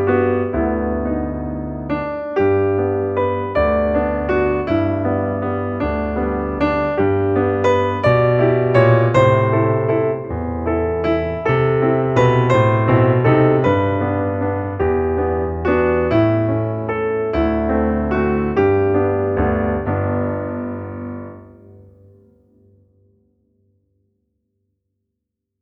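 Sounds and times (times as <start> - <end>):
solo piano: 0.0 - 23.1.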